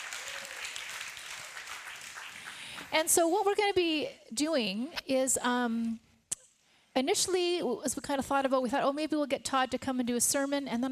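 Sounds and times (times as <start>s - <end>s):
round of applause: 0.0s - 2.9s
speech: 2.9s - 6.0s, 7.0s - 10.9s.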